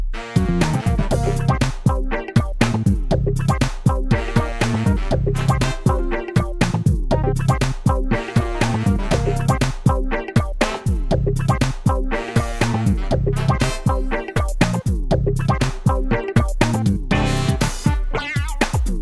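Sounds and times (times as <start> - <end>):
instrumental music: 0.1 - 19.0.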